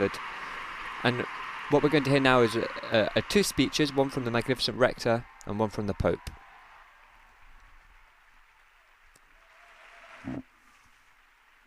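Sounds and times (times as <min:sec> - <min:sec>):
speech: 0:00.0 - 0:00.4, 0:01.0 - 0:06.4, 0:10.3 - 0:10.5
applause in a hall: 0:00.0 - 0:10.2.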